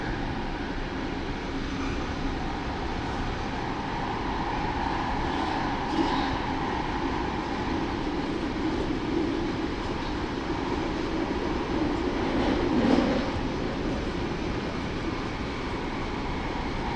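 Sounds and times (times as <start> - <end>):
train riding: 0.0 - 16.9.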